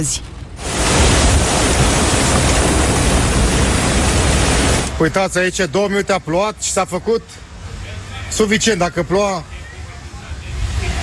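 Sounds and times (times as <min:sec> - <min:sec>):
speech: 0:00.0 - 0:00.3, 0:05.0 - 0:07.5, 0:08.3 - 0:09.5
strong storm wind: 0:00.0 - 0:05.0.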